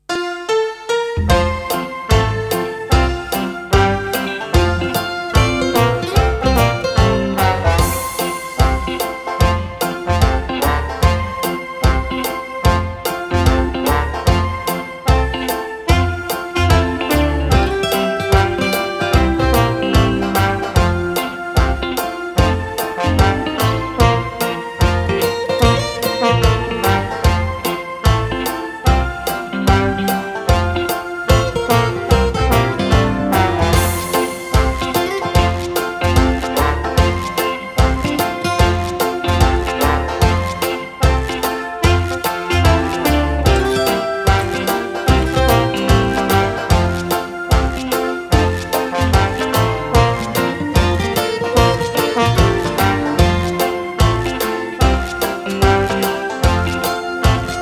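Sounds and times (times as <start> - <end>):
recorder melody: 0.0 - 57.6.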